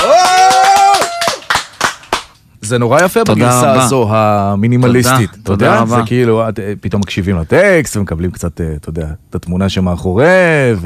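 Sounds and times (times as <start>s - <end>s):
audience hand claps at a live music performance: 0.0s - 2.4s
speech: 2.7s - 10.8s
sustained voice tone: 5.5s - 6.1s.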